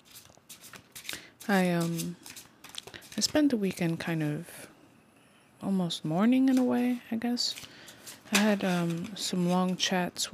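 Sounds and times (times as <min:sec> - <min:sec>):
tarot cards being shuffled: 0:00.0 - 0:03.9, 0:06.4 - 0:09.9
speech: 0:01.5 - 0:02.2, 0:03.2 - 0:04.7, 0:05.6 - 0:07.7, 0:08.3 - 0:10.3.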